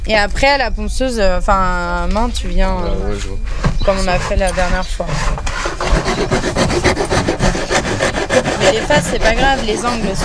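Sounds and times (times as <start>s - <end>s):
speech: 0.1s - 7.0s, 8.4s - 10.2s
file and rasp shaping a piece of wood: 3.4s - 10.2s.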